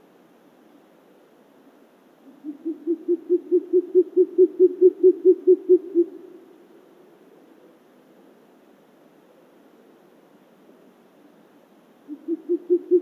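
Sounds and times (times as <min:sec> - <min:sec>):
short-eared owl Asio flammeus calling: 0:02.2 - 0:06.4, 0:12.1 - 0:13.0.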